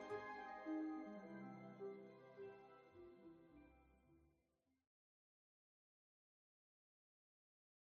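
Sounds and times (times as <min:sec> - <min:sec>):
orchestral arrangement: 0:00.0 - 0:04.0.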